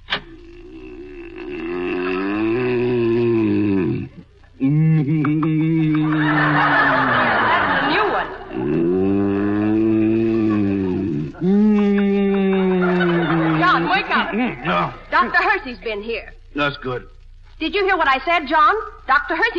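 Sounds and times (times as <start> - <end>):
man snoring loudly: 0.3 - 6.4, 8.5 - 13.6
laughter: 4.9 - 15.3
speech: 14.9 - 19.5.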